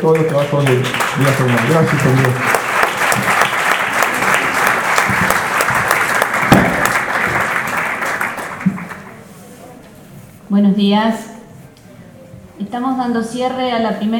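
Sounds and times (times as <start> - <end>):
speech: 0.0 - 2.6, 10.5 - 11.3, 12.7 - 14.1
conference audience applause at a health movement assembly: 0.0 - 9.2.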